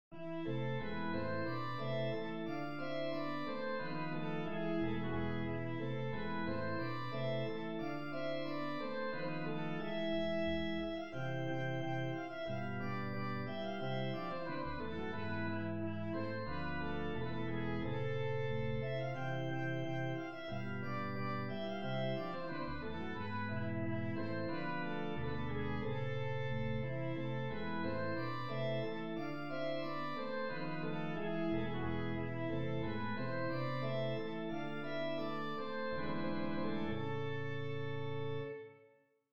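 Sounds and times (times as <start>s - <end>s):
minor-key rigaudon: 0.2s - 38.8s.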